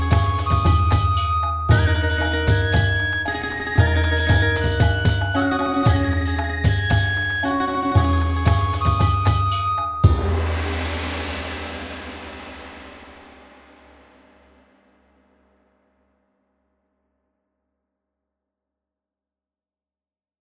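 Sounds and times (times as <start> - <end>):
Chinese ribbon dance music: 0.0 - 11.6.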